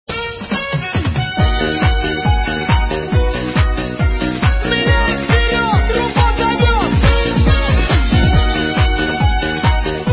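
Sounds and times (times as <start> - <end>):
trumpet: 0.1 - 10.1.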